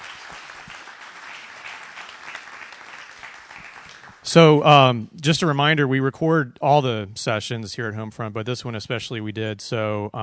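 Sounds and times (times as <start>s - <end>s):
audience applause: 0.0s - 4.3s
speech: 4.2s - 10.2s.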